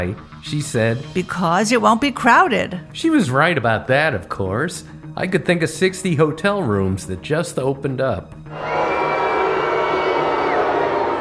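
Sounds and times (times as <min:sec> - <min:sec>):
speech: 0:00.0 - 0:08.8
crowd booing sound effect: 0:08.5 - 0:11.1.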